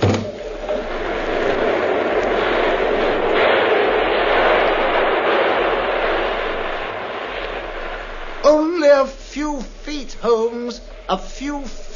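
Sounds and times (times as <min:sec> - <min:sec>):
train passing: 0:00.3 - 0:11.9
speech: 0:09.5 - 0:11.9.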